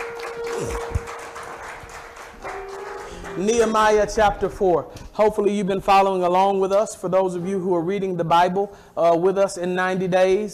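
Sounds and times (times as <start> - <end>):
audience hand clapping: 0.0 - 4.0
speech: 3.4 - 10.5.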